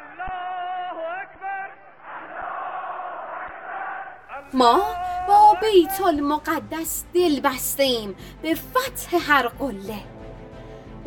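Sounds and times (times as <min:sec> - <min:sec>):
crowd shouting battle cry: 0:00.0 - 0:06.5
speech: 0:04.5 - 0:10.1.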